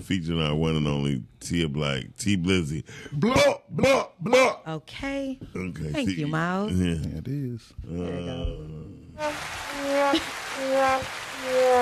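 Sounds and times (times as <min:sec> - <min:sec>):
speech: 0:00.0 - 0:11.8
clapping sound effect resembling rain: 0:09.2 - 0:11.8.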